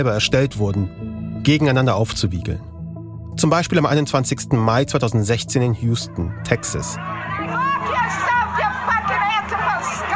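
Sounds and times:
speech: 0.0s - 2.7s, 3.4s - 7.2s
two crowds of protesters shouting: 7.0s - 10.1s.

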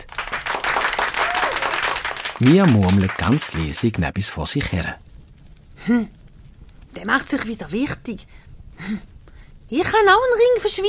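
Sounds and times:
people clapping: 0.0s - 4.1s
speech: 2.4s - 5.1s, 5.8s - 6.2s, 6.9s - 9.1s, 9.7s - 10.8s.

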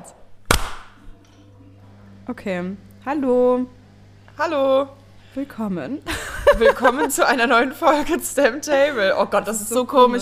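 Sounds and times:
single hand clap: 0.5s - 1.0s
speech: 2.3s - 3.8s, 4.4s - 10.2s
laughter: 6.1s - 9.1s.

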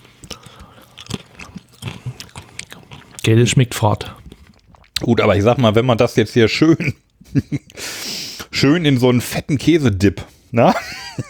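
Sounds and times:
chewing a crunchy cracker with a bland pear taste: 0.0s - 5.1s
speech: 3.3s - 4.2s, 5.0s - 7.9s, 8.6s - 11.2s.

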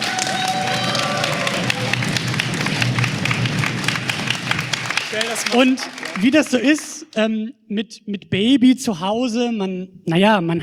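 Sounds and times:
applause: 0.0s - 7.2s
speech: 5.4s - 10.6s.

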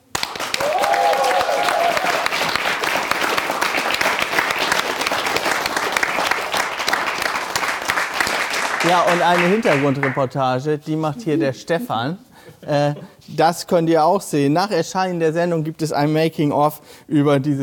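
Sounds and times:
audience clapping: 0.0s - 10.3s
speech: 8.9s - 17.6s.

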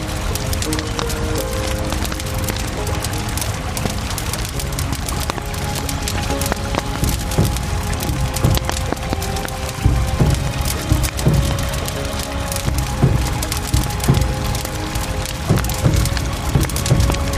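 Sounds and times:
Isar river water rushing: 0.0s - 17.3s
campfire crackling beside the Isar river: 0.0s - 17.3s
splitting wood snapping: 0.0s - 17.3s.

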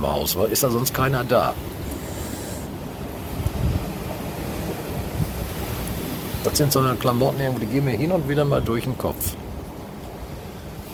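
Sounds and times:
speech: 0.0s - 1.9s, 6.5s - 9.4s
low wind rumble: 0.0s - 10.9s
waves washing onto a beach: 0.0s - 10.9s.

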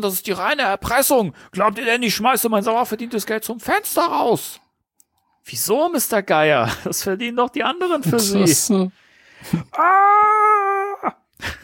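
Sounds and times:
speech: 0.0s - 4.6s, 5.4s - 10.4s, 11.0s - 11.6s
man screaming as he falls: 9.7s - 11.3s.

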